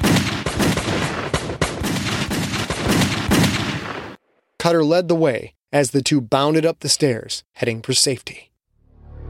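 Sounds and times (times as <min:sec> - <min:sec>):
gunshots fired into a dark basement: 0:00.0 - 0:04.2
speech: 0:04.6 - 0:08.5.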